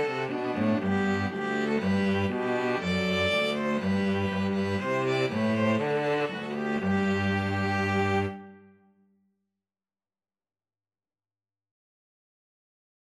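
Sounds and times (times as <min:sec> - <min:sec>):
string trio playing a Te Deum: 0:00.0 - 0:08.6.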